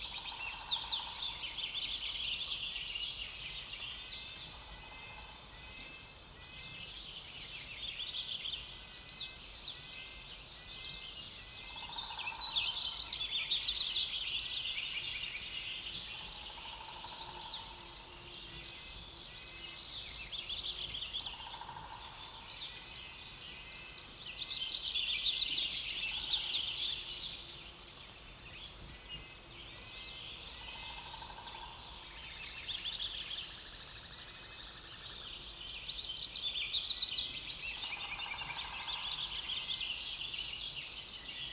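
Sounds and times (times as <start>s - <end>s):
coniferous forest ambience: 0.0s - 41.5s.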